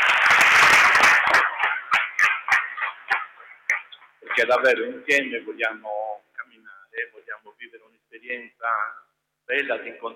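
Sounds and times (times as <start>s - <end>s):
audience applauding the parents: 0.0s - 3.7s
speech: 4.4s - 6.0s, 7.0s - 10.1s.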